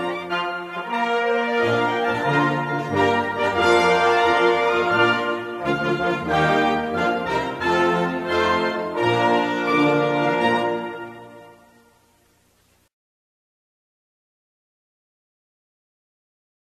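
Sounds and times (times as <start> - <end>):
national anthem: 0.0 - 12.2.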